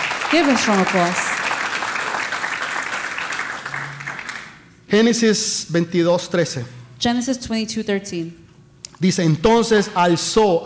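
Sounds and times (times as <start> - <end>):
audience applause: 0.0 - 4.6
speech: 0.3 - 1.2, 4.9 - 8.4, 9.0 - 10.6.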